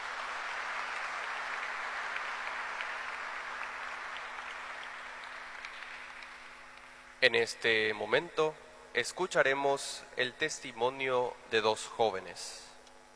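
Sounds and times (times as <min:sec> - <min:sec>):
audience applause: 0:00.0 - 0:06.6
speech: 0:07.2 - 0:12.7.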